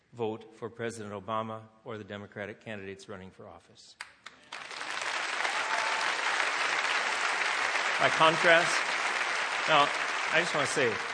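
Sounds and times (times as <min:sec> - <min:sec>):
speech: 0:00.2 - 0:04.3, 0:08.0 - 0:08.9, 0:09.6 - 0:11.1
audience clapping: 0:04.0 - 0:11.1.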